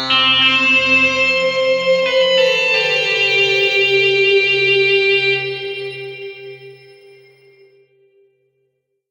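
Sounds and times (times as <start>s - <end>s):
quartet playing: 0.1s - 6.5s.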